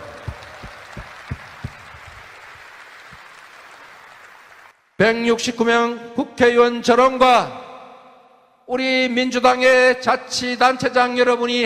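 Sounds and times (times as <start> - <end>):
audience applause: 0.0 - 4.9
speech: 5.0 - 7.6, 8.7 - 11.6.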